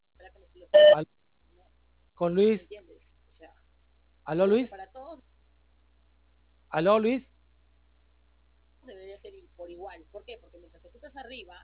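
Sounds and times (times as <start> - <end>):
speech: 0.6 - 1.1, 2.2 - 2.9, 4.3 - 5.3, 6.7 - 7.3, 8.9 - 11.6
short electronic telephone tone: 0.8 - 1.0.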